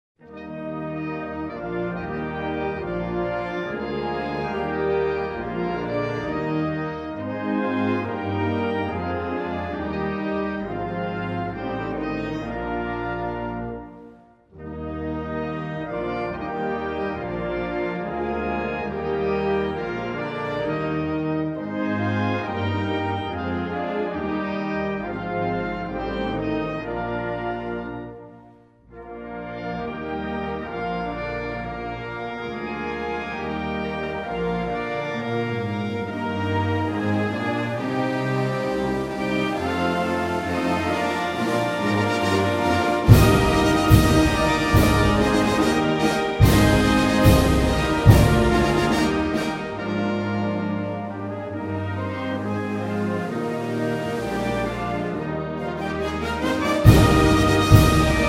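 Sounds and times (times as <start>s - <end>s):
national anthem: 0.2s - 58.2s.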